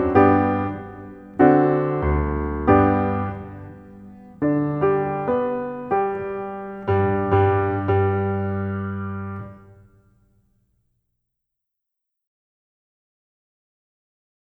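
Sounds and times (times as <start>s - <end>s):
piano march accompaniment in G: 0.0s - 10.0s.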